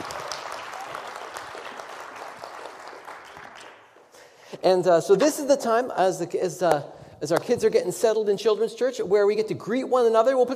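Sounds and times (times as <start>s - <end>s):
audience applause: 0.0s - 4.1s
speech: 4.6s - 10.5s.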